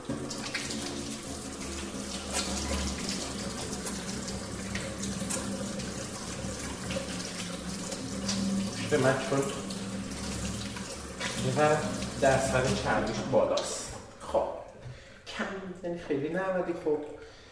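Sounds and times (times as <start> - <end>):
water running from a tap as hands are washed: 0.0 - 15.0
speech: 8.9 - 9.6, 11.4 - 14.5, 15.8 - 17.2.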